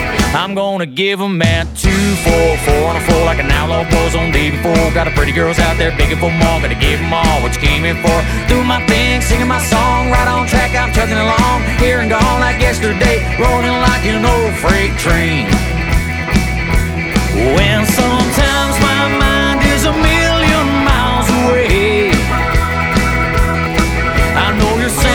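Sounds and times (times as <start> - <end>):
modern six-piece country rock band playing live in UK: 0.0 - 0.6, 1.4 - 25.1.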